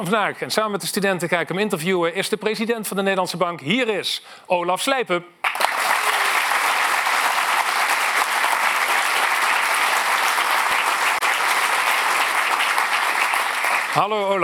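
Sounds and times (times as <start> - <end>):
speech: 0.0 - 5.6, 14.0 - 14.4
audience applause: 5.4 - 14.4.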